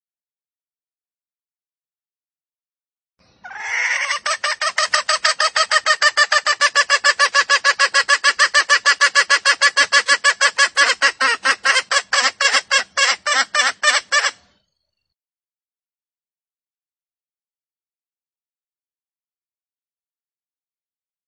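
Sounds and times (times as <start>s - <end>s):
female junglefowl squawking lure call: 3.4s - 14.4s.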